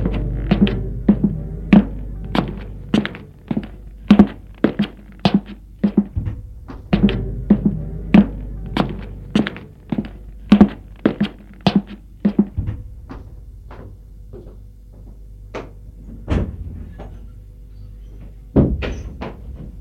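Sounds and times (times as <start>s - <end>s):
wooden knocks and thumps of an old trunk being opened in an attic: 0.0s - 15.8s.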